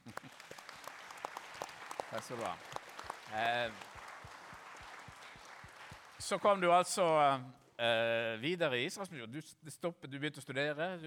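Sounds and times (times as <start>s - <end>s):
audience applause: 0.0s - 7.0s
speech: 2.1s - 3.9s, 6.2s - 11.0s.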